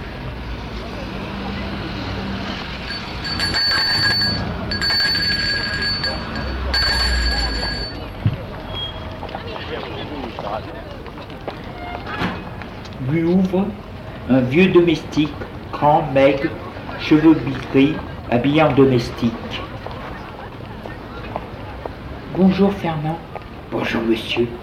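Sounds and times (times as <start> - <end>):
steady rumbling noise: 0.0 - 24.6
buzzing doorbell ringing: 2.8 - 8.0
speech: 13.5 - 19.6, 22.4 - 24.6.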